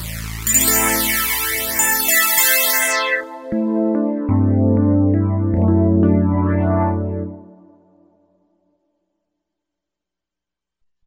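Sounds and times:
Roland V-Synth JX electric piano factory patch: 0:00.5 - 0:07.6.

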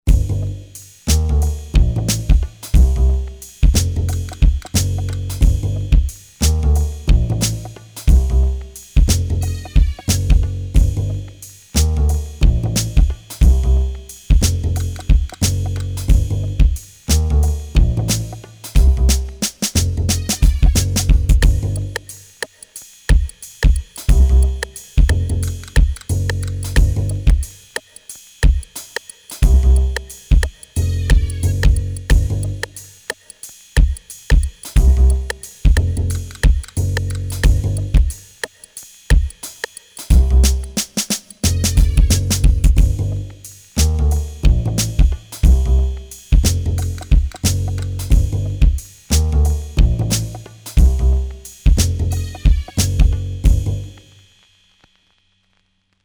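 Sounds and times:
Akai XR20 drum machine lounge factory pattern: 0:00.1 - 0:53.8.

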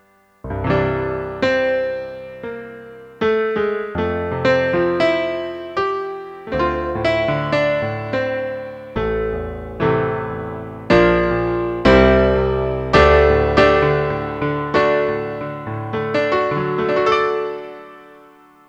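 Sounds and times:
16-foot synthesizer piano note: 0:00.0 - 0:18.6.

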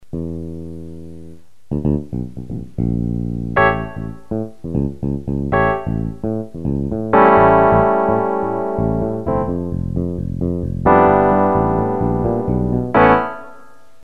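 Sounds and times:
electric piano: 0:03.5 - 0:14.0.

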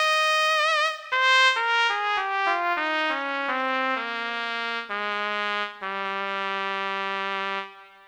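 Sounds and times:
Korg DSS-1 flugelhorn brass sound: 0:00.0 - 0:08.0.

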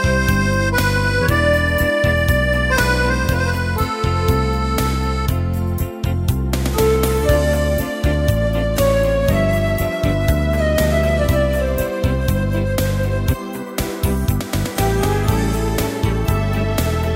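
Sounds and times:
Alpine schlager music by an entertainer: 0:00.0 - 0:17.1.

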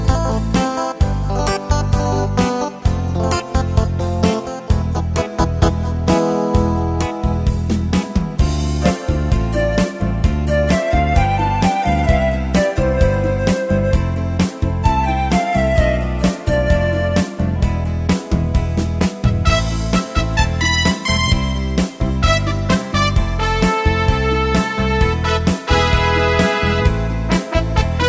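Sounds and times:
1960s 8 beat pop and rock rhythm: 0:00.0 - 0:28.0.

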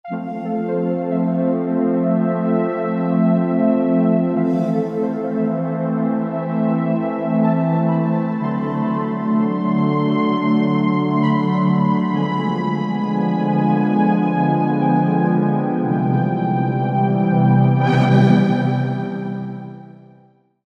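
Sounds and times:
Marine patch on Roland SR-JV80-07 Super Sound Set: 0:00.1 - 0:20.1.

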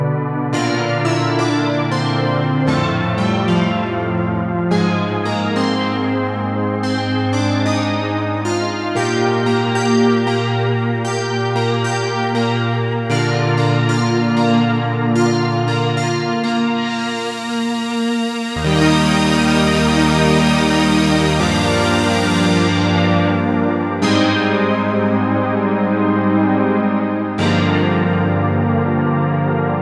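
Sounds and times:
80s synth pad on a Novation UltraNova: 0:00.0 - 0:29.8.

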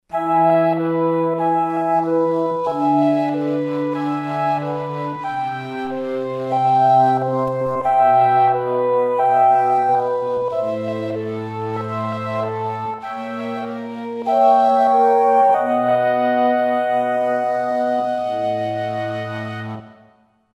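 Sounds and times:
Roland V-Synth synthesizer: 0:00.1 - 0:20.2.

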